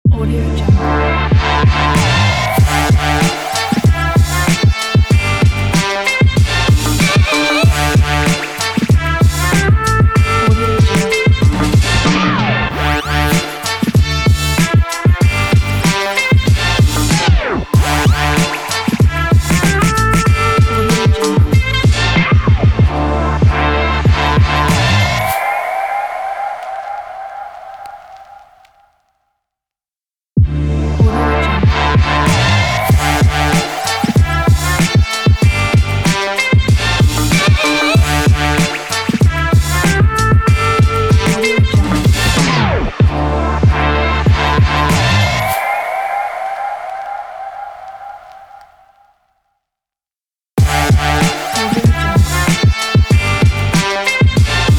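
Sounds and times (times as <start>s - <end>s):
hip hop opener music: 0.0s - 28.6s, 30.4s - 48.5s, 50.6s - 54.7s.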